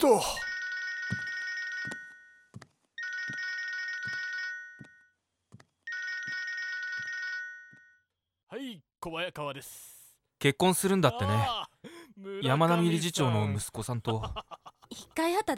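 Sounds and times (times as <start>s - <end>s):
speech: 0.0s - 0.4s, 9.0s - 15.5s
telephone ringing with electronic multi-tone trill: 0.4s - 5.2s, 5.9s - 8.0s
laughter: 11.0s - 11.8s, 13.9s - 15.0s.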